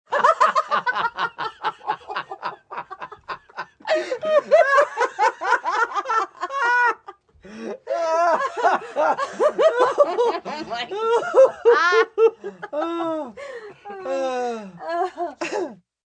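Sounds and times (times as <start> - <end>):
group of three to five 30-something friends belly laughing, out of breath: 0.1 - 15.8.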